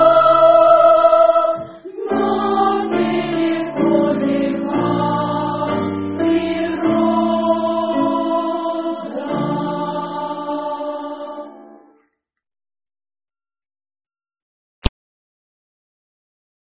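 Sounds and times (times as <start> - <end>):
senior school choir singing: 0.0 - 12.0.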